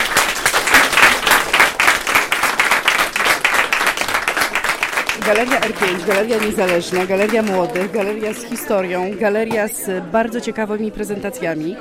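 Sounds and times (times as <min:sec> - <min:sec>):
audience applause: 0:00.0 - 0:09.3
speech: 0:05.3 - 0:11.7.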